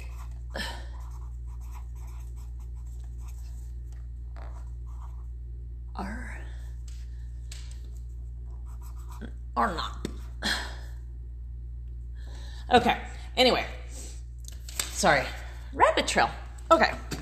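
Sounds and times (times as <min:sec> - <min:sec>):
marker writing a note: 0:00.0 - 0:05.3, 0:08.5 - 0:09.4
steady low hum: 0:00.0 - 0:17.1
speech: 0:09.2 - 0:10.0, 0:12.7 - 0:13.8, 0:15.0 - 0:17.1.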